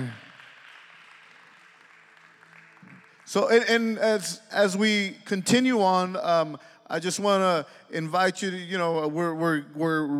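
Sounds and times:
church congregation applauding: 0:00.0 - 0:05.1
speech: 0:03.3 - 0:10.1.

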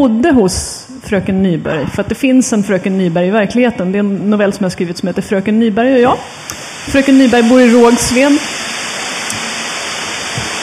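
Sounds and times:
speech: 0:00.0 - 0:08.7
steam locomotive steam release hissing: 0:06.2 - 0:10.6.

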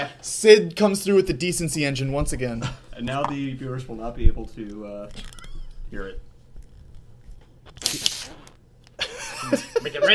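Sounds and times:
speech: 0:00.0 - 0:06.3, 0:09.4 - 0:10.1
soda bottle cap clicks: 0:07.8 - 0:08.4
soda fizzing: 0:07.8 - 0:08.6.

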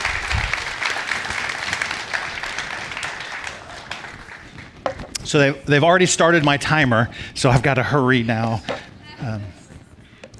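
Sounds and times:
crowd audience applauding: 0:00.0 - 0:05.0
speech: 0:05.3 - 0:09.5.

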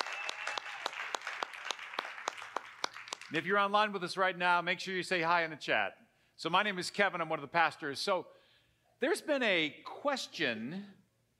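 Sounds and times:
church congregation applause in welcome: 0:00.0 - 0:03.4
speech: 0:03.3 - 0:08.4, 0:09.0 - 0:11.0.

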